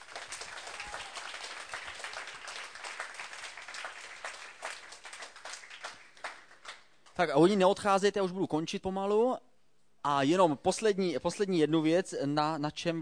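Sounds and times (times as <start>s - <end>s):
audience applause: 0.0s - 6.8s
speech: 7.2s - 12.9s.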